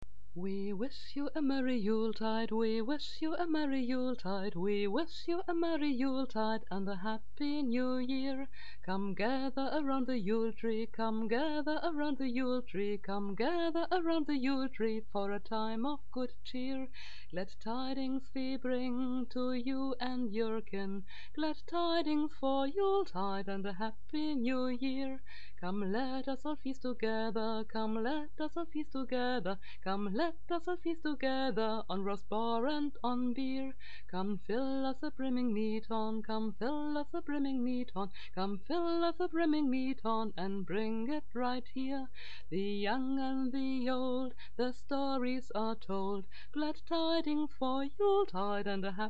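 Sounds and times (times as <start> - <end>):
a cappella Christmas carol singing: 0.4 - 49.0.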